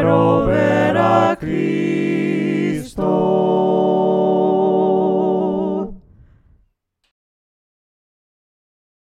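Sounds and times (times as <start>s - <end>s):
voices singing hymns a cappella: 0.0s - 6.1s.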